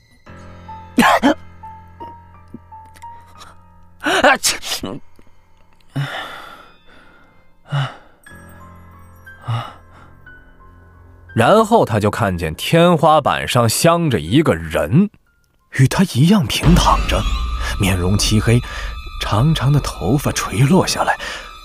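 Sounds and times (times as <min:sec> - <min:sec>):
person sneezing: 0:01.0 - 0:01.4
speech: 0:04.2 - 0:05.1, 0:11.4 - 0:21.5.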